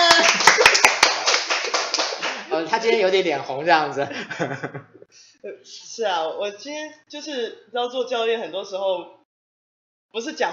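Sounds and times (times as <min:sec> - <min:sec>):
audience applause: 0:00.0 - 0:02.5
speech: 0:02.8 - 0:09.2, 0:10.1 - 0:10.5
laughter: 0:04.0 - 0:05.1.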